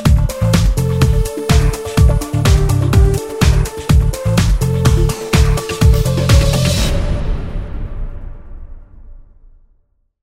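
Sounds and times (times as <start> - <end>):
techno dance music: 0.0 - 6.9.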